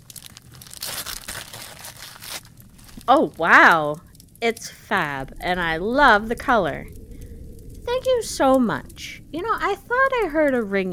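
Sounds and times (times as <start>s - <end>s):
gift wrapping paper being torn open and crinkled: 0.0s - 3.2s
speech: 3.1s - 7.0s, 7.9s - 10.9s.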